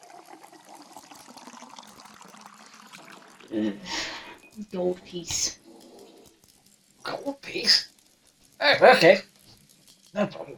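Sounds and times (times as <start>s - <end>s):
ale and mead poured into glasses at a tavern bar: 0.0s - 4.6s
speech: 3.5s - 5.6s, 7.1s - 7.9s, 8.6s - 9.3s, 10.2s - 10.5s.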